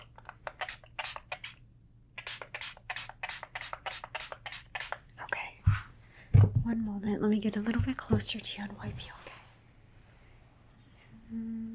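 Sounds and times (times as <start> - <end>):
spray bottle spraying water: 0.5 - 1.6, 2.2 - 5.0
faint low hum: 5.1 - 11.7
speech: 6.7 - 9.2.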